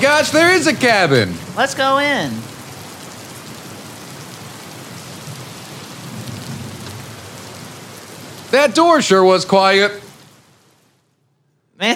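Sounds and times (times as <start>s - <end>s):
speech: 0.0s - 2.5s, 8.5s - 10.0s
rain falling outside: 0.0s - 11.2s.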